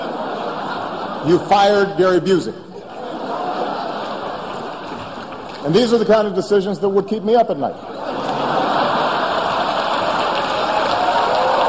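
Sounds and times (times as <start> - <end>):
laughter: 0.0 - 6.4, 7.6 - 11.6
speech: 1.2 - 2.6, 5.6 - 7.9
rousing applause at a dinner: 8.2 - 11.6.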